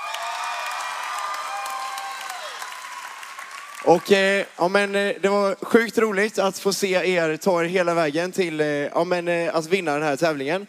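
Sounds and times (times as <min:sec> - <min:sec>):
cheers and whoops: 0:00.0 - 0:03.9
crowd applause for the winning team: 0:00.0 - 0:04.8
speech: 0:03.8 - 0:10.6.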